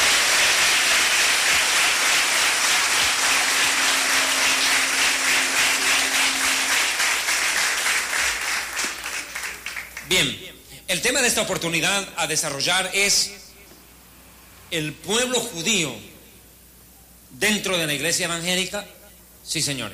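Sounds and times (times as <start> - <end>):
audience applause: 0.0 - 10.1
speech: 11.0 - 13.4, 14.7 - 16.1, 17.4 - 19.9.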